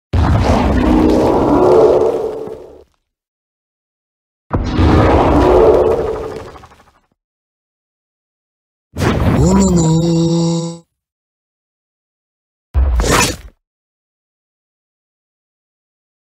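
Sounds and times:
Minecraft Evoker sound: 0:00.4 - 0:02.8, 0:04.6 - 0:07.0, 0:09.3 - 0:10.8.

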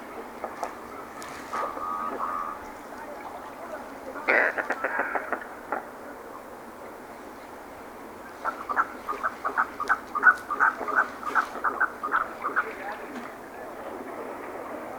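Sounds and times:
merganser calling: 0:00.9 - 0:05.4, 0:08.2 - 0:13.1.

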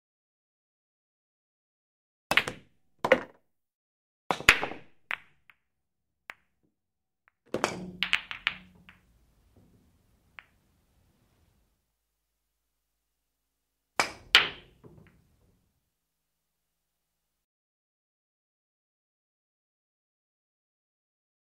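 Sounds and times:
billiard balls: 0:02.3 - 0:03.4, 0:04.3 - 0:05.6, 0:07.3 - 0:11.8, 0:14.0 - 0:15.5.

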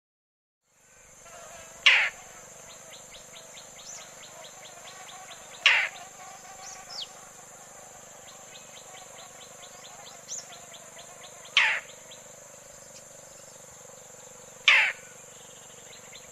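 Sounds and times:
roller harsh grating calls: 0:01.4 - 0:12.3, 0:14.5 - 0:15.8.

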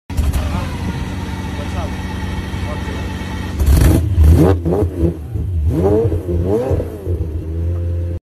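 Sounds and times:
Pagani Zonda sports car: 0:00.1 - 0:08.2.

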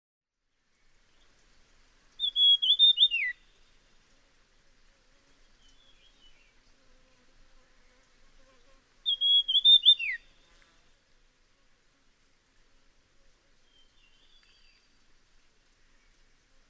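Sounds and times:
Dusky fulvetta high whistle: 0:02.2 - 0:03.4, 0:09.1 - 0:10.3.

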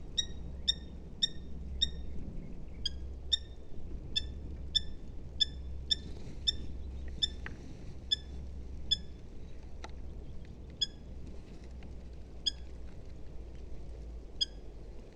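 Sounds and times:
Eurasian hobby giving clear ringing kew notes: 0:00.2 - 0:02.1, 0:02.8 - 0:07.4, 0:08.1 - 0:09.2, 0:14.4 - 0:14.7.

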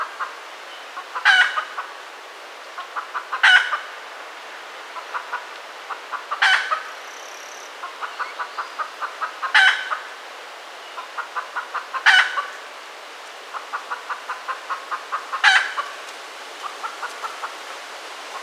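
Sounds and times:
red junglefowl calling: 0:01.0 - 0:02.0, 0:02.8 - 0:04.0, 0:04.9 - 0:10.2, 0:10.8 - 0:12.7, 0:13.4 - 0:18.4.

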